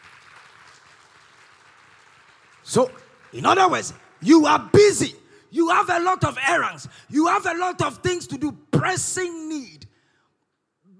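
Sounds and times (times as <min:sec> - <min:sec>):
audience clapping: 0:00.0 - 0:05.1
speech: 0:02.7 - 0:09.8.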